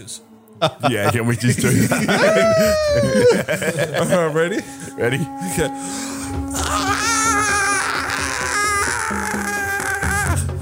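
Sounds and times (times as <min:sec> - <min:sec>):
speech: 0:00.0 - 0:07.6
laughter: 0:00.6 - 0:05.7
voice imitating a caterpillar's scream: 0:02.2 - 0:03.4, 0:06.5 - 0:10.6.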